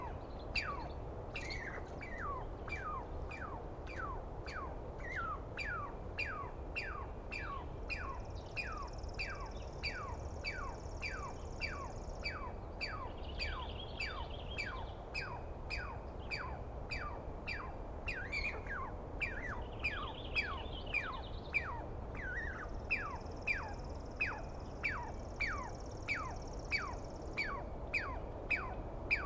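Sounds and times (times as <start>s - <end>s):
Douglas squirrel alarm call: 0.0s - 29.2s
high trilling bird: 0.0s - 29.2s.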